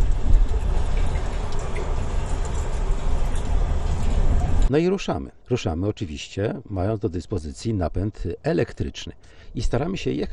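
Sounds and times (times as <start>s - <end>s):
rain falling: 0.0s - 4.7s
speech: 4.7s - 10.3s.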